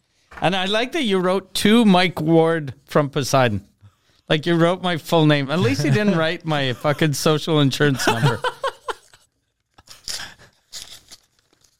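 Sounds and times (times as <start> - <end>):
speech: 0.4 - 3.7, 4.3 - 8.6
laughter: 5.5 - 7.1, 7.8 - 9.2
envelope holding a Christmas card and a check being ripped open: 9.8 - 11.7.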